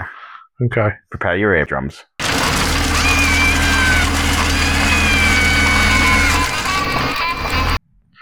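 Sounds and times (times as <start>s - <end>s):
speech: 0.6s - 2.1s
plane engine drone: 2.2s - 7.8s.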